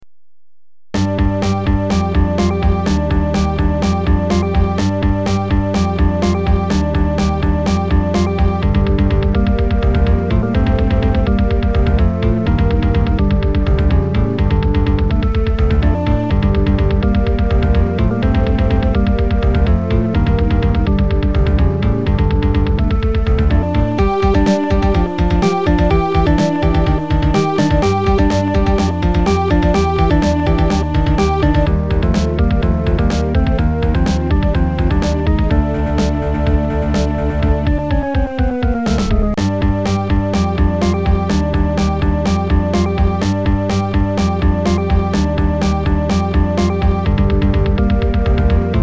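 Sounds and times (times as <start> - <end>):
level 1 game background music: 0.9 - 48.8.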